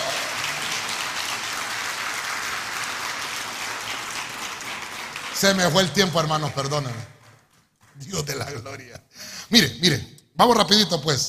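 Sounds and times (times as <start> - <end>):
audience clapping: 0.0 - 8.9
speech: 5.4 - 7.2, 8.0 - 11.2
laughter: 8.0 - 9.2.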